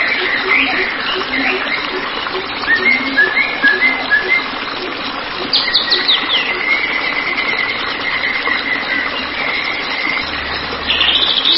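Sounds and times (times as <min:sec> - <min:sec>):
White-rumped shama singing: 0:00.0 - 0:11.5.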